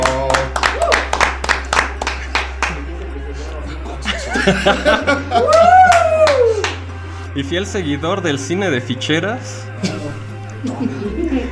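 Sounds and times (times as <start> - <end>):
hands clapping: 0.0 - 3.1, 5.4 - 6.9
constant low hum: 0.0 - 11.5
scattered voices: 2.6 - 5.9, 6.5 - 11.5
laughter: 3.6 - 6.7, 9.8 - 11.5
speech: 4.4 - 5.8, 7.4 - 10.0, 10.7 - 11.2.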